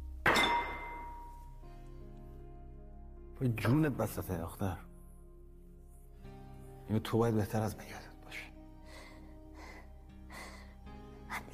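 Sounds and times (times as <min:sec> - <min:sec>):
glass banged down on a table: 0:00.2 - 0:01.4
speech: 0:03.4 - 0:04.9, 0:06.9 - 0:08.5.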